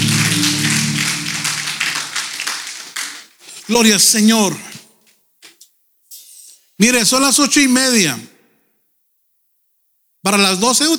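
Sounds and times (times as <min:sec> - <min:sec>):
low sustained musical hum: 0:00.0 - 0:02.2
audience applause: 0:00.0 - 0:03.8
speech: 0:03.7 - 0:04.8, 0:06.8 - 0:08.3, 0:10.2 - 0:10.9.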